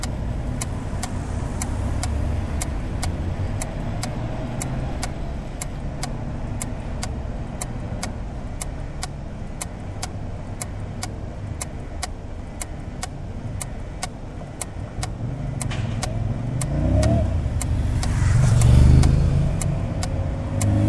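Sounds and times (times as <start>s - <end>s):
acoustic traffic light signal at a stop: 0.0s - 20.8s.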